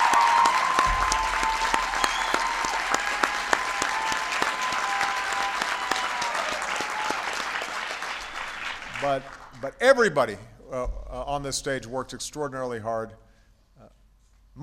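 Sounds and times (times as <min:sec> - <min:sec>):
audience applause: 0:00.0 - 0:09.6
speech: 0:09.1 - 0:13.2.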